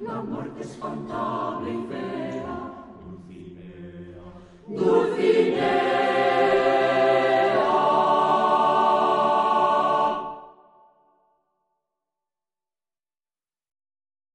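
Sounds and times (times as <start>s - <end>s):
choir singing: 0.0s - 11.0s.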